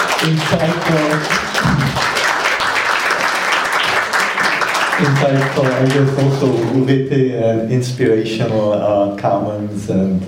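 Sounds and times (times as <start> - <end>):
crowd applause: 0.0 - 7.1
speech: 0.2 - 2.1, 5.0 - 10.2.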